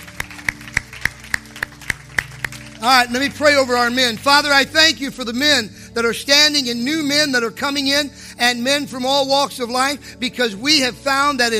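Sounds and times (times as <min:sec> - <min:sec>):
audience applause: 0:00.0 - 0:04.0
speech: 0:02.8 - 0:11.5.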